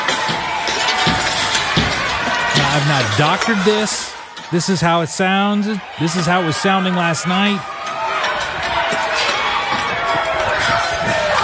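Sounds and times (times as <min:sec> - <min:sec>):
crowd cheering and shouting: 0:00.0 - 0:11.4
sharp thuds and bangs of windows being smashed: 0:02.6 - 0:03.6
speech: 0:02.8 - 0:07.8.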